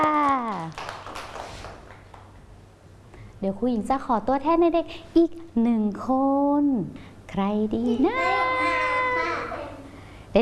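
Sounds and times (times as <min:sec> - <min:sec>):
children clapping: 0:00.0 - 0:02.4, 0:08.6 - 0:09.2
speech: 0:03.4 - 0:08.4.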